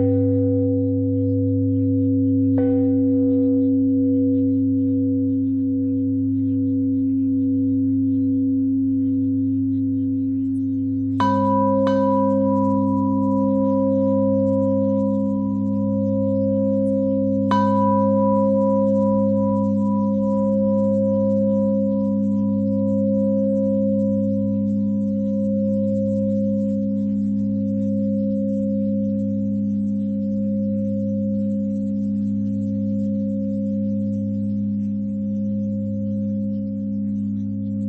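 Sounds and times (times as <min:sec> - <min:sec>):
bell threads: 0:00.0 - 0:37.8.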